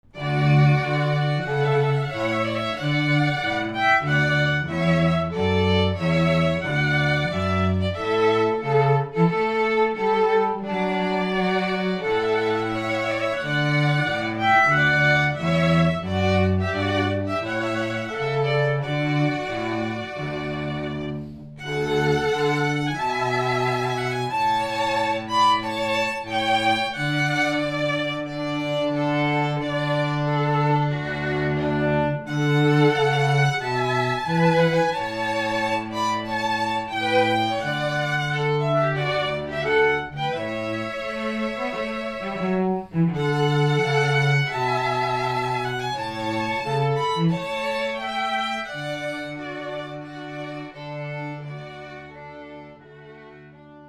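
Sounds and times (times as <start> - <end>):
trumpet piece: 0.1 - 52.8.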